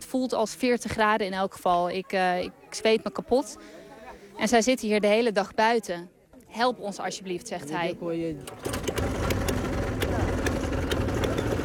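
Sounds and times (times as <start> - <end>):
speech: 0.1 - 3.8, 4.4 - 9.0
boat engine in Pakistan rumbling: 8.4 - 11.6.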